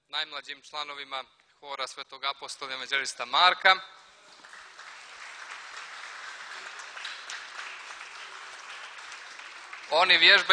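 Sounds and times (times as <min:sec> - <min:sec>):
speech: 0:00.1 - 0:04.0, 0:09.9 - 0:10.5
audience applause for younger choir members: 0:04.1 - 0:10.5.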